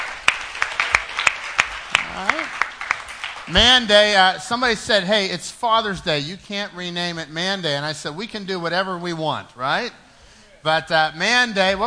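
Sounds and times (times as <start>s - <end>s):
audience clapping at a Father's Day gathering: 0.0s - 4.3s
speech: 2.2s - 2.6s, 3.5s - 10.0s, 10.6s - 11.8s.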